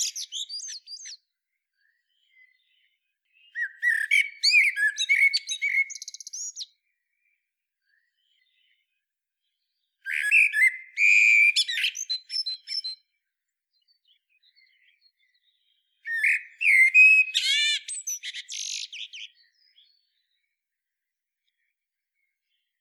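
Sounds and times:
common blackbird song: 0:00.0 - 0:22.7.

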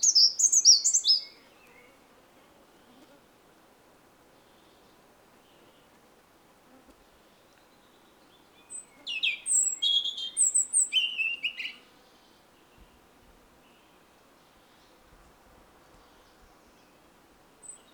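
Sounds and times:
European robin song of high thin whistles and trills: 0:00.0 - 0:02.0, 0:07.6 - 0:11.8.

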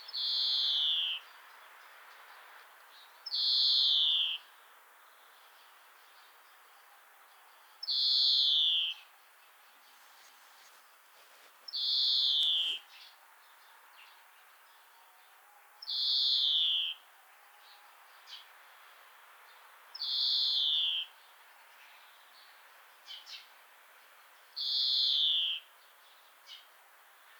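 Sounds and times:
European greenfinch Chloris chloris song with twittering, trills and buzzy wheezes: 0:00.0 - 0:04.5, 0:07.4 - 0:15.0, 0:15.8 - 0:17.0, 0:19.5 - 0:23.5, 0:24.5 - 0:26.7.

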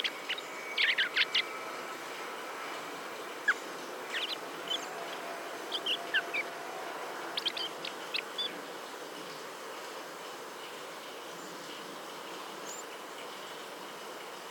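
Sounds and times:
Common blackbird calling: 0:00.0 - 0:01.8, 0:03.4 - 0:06.5, 0:07.2 - 0:08.6
background hiss: 0:00.0 - 0:14.4.

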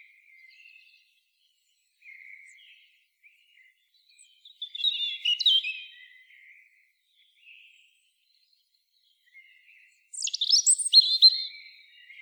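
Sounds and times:
European robin Erithacus rubecula singing: 0:04.1 - 0:06.1, 0:10.1 - 0:12.2.

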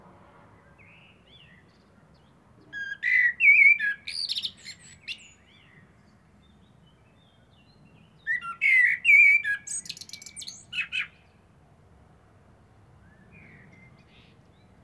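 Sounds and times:
common blackbird singing: 0:00.7 - 0:11.3.

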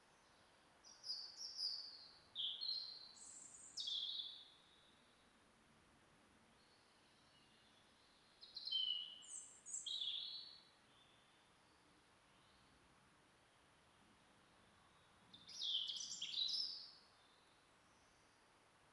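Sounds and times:
European robin singing: 0:00.2 - 0:05.0, 0:06.6 - 0:12.7, 0:15.3 - 0:18.4.

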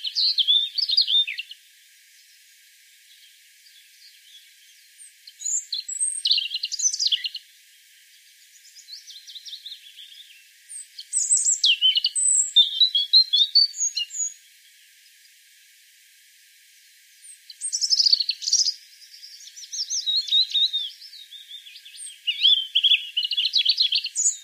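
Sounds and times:
European robin song of high warbles and trills: 0:00.0 - 0:01.6, 0:03.1 - 0:07.4, 0:08.4 - 0:14.4, 0:17.2 - 0:24.4.

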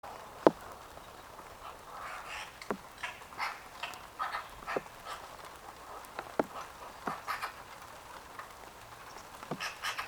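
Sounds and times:
Eurasian magpie chattering: 0:01.6 - 0:05.3, 0:05.9 - 0:07.6, 0:09.6 - 0:10.0.

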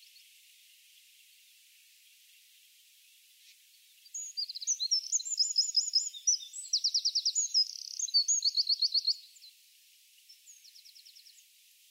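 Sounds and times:
Eurasian wren song: 0:00.0 - 0:11.8.

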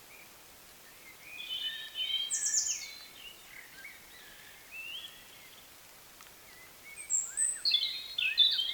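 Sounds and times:
European robin song with high thin whistled and trilled phrases: 0:00.9 - 0:05.6, 0:06.5 - 0:08.7.

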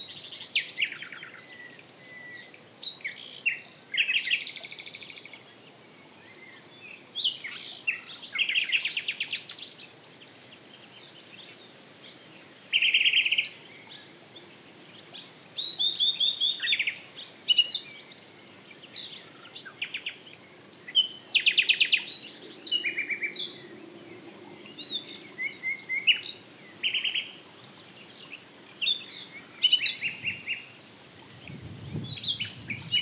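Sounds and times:
common nightingale Luscinia megarhynchos song: 0:00.0 - 0:33.0.

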